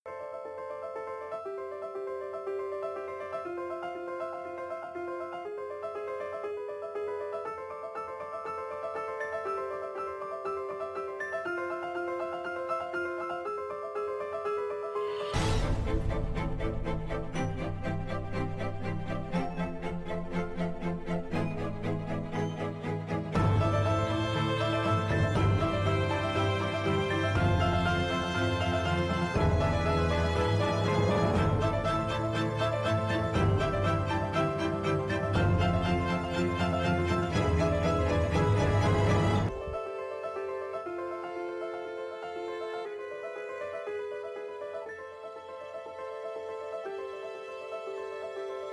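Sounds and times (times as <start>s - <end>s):
music: 0.0s - 48.7s.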